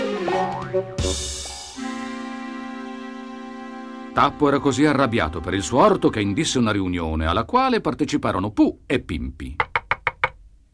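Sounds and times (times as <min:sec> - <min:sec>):
springy cartoon boings of bouncing: 0:00.0 - 0:01.9
speech: 0:00.7 - 0:01.3, 0:04.2 - 0:09.7.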